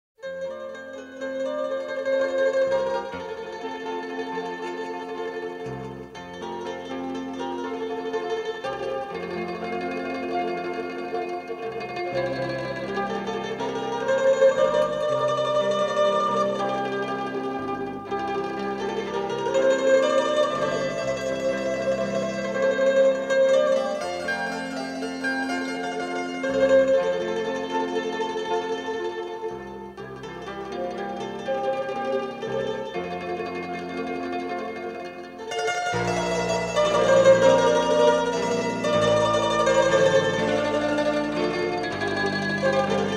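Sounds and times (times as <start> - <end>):
mandolin: 0.2 - 43.1.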